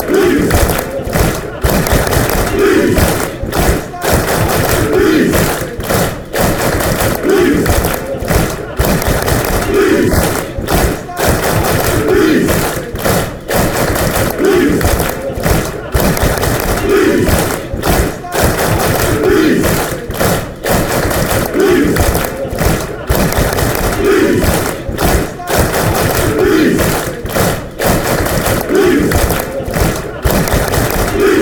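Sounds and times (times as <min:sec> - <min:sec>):
Leeds fans clapping: 0:00.0 - 0:31.4
laughter: 0:00.0 - 0:31.4.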